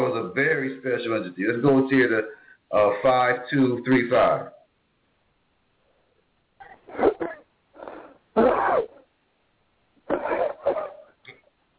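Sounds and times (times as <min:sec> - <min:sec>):
speech: 0:00.4 - 0:04.6, 0:06.9 - 0:07.1
caller coughing: 0:06.9 - 0:07.4, 0:08.4 - 0:09.0, 0:10.1 - 0:11.2.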